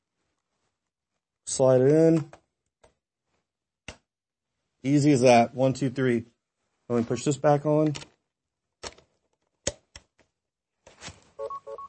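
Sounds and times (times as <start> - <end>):
speech: 1.5 - 2.4, 4.8 - 6.3, 6.9 - 8.1
device beep confirming connection: 11.4 - 11.8.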